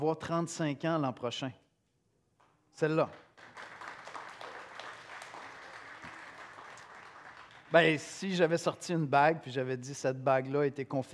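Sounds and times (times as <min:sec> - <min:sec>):
speech: 0:00.0 - 0:01.6, 0:02.8 - 0:03.2, 0:07.7 - 0:11.1
audience applause: 0:03.4 - 0:08.0.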